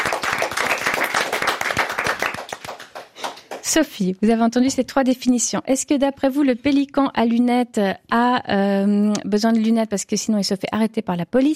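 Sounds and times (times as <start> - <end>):
audience applauding: 0.0 - 3.7
speech: 3.7 - 11.5.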